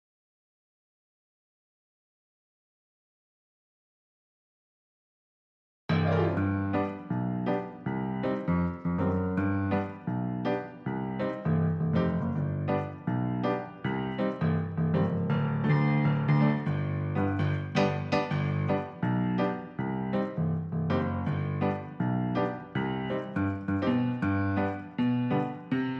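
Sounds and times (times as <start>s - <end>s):
piano: 5.9s - 25.9s.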